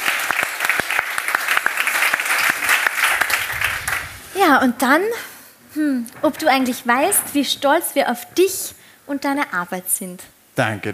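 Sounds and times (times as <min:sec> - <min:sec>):
applause: 0:00.0 - 0:04.3
speech: 0:04.4 - 0:10.9.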